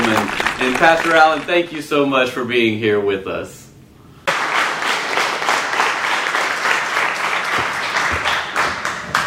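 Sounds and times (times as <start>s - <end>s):
crowd applause: 0.0s - 1.8s, 4.3s - 9.2s
speech: 0.2s - 3.6s.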